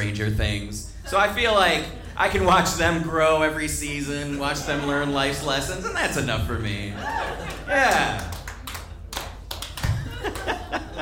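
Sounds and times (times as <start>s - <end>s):
speech: 0.0s - 8.3s
laughter: 4.2s - 8.4s, 9.8s - 11.0s
audience applause: 7.4s - 11.0s.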